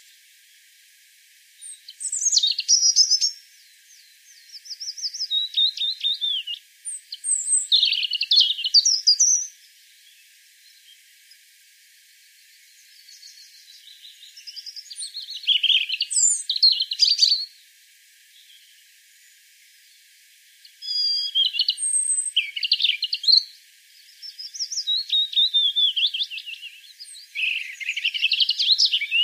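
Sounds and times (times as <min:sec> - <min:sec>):
European robin singing: 0:01.6 - 0:11.0, 0:12.6 - 0:17.6, 0:20.6 - 0:29.2.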